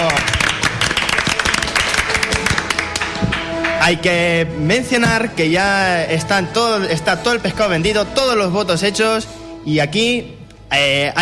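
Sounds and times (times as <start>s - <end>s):
applause: 0.0s - 4.0s
speech: 3.9s - 11.2s.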